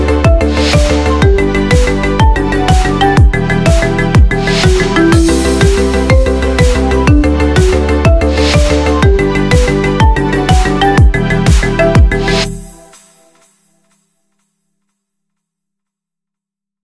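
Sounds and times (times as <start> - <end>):
marimba remix: 0.0 - 13.2.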